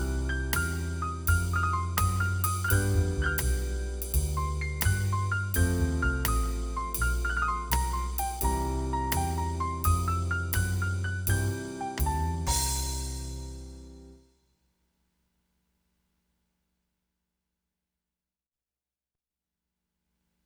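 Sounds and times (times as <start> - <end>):
12-bar blues: 0.0 - 14.0.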